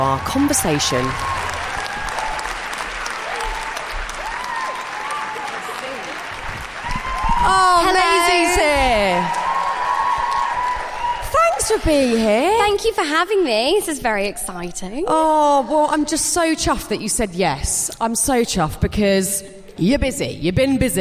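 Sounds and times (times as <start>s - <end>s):
speech: 0.0s - 1.4s, 11.7s - 21.0s
voices and whoops: 0.0s - 12.4s
studio audience clapping before a chat show: 0.0s - 12.8s.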